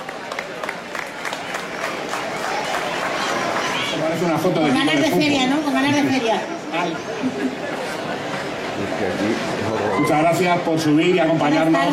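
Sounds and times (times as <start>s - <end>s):
audience applause: 0.0s - 4.4s
speech: 4.1s - 7.8s, 8.8s - 11.9s.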